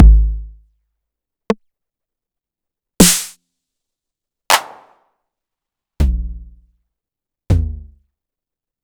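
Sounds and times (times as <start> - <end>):
909 drum kit slice: 0.0 - 0.5, 3.0 - 3.3, 7.5 - 7.9.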